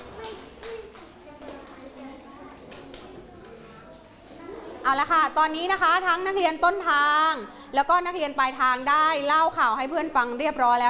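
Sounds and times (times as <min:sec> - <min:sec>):
students clapping for a group: 0:00.0 - 0:01.9
speech: 0:04.9 - 0:10.8.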